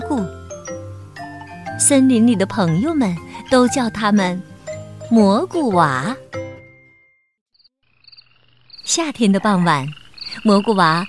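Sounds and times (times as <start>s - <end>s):
speech: 0.1s - 0.4s, 1.8s - 4.5s, 5.1s - 6.3s, 9.0s - 11.0s
deep resonant frog croak: 7.6s - 11.0s.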